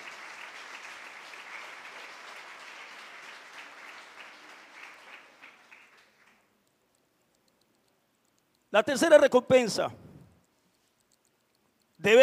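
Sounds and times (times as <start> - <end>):
audience applause: 0.0 - 6.4
speech: 8.7 - 10.0, 12.0 - 12.2.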